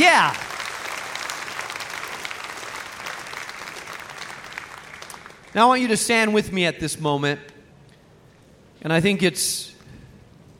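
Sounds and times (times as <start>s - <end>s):
speech: 0.0s - 0.4s, 5.5s - 7.5s, 8.8s - 9.8s
crowd applauding: 0.0s - 5.8s.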